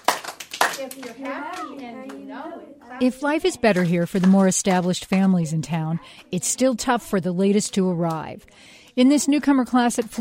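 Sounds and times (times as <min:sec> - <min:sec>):
children clapping hands to a song: 0:00.0 - 0:02.3, 0:03.6 - 0:05.4, 0:09.9 - 0:10.1
speech: 0:00.8 - 0:10.1.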